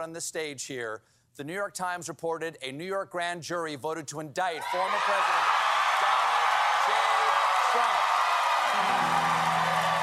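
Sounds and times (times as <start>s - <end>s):
speech: 0.0s - 5.6s
uproarious continuous applause: 4.6s - 10.0s.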